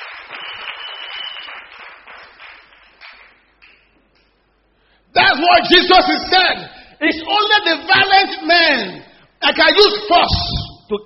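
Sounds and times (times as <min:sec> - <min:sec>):
audience clapping: 0:00.0 - 0:04.4
speech: 0:05.3 - 0:11.0.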